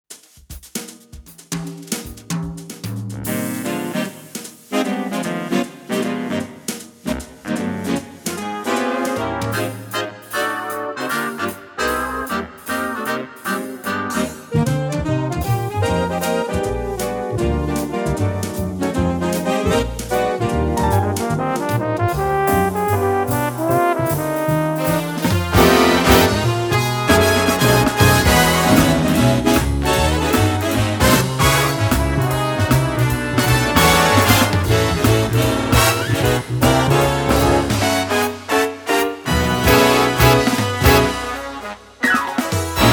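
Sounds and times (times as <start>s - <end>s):
big band: 0.1s - 42.9s.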